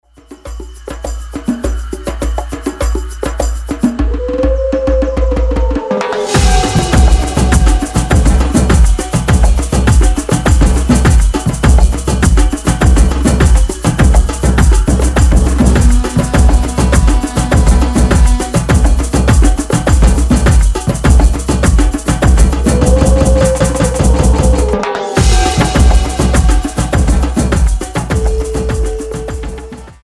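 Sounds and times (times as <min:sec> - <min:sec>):
samba music: 0:00.0 - 0:30.0.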